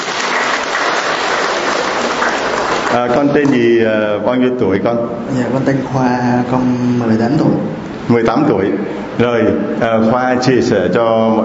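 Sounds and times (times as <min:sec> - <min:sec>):
applause greeting a young man as he sits down: 0:00.0 - 0:03.3
speech: 0:02.9 - 0:11.4.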